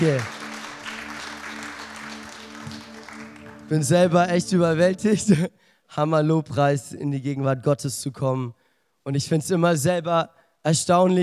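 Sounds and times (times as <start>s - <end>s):
speech: 0.0s - 0.4s, 3.7s - 11.2s
crowd applauding: 0.0s - 5.0s.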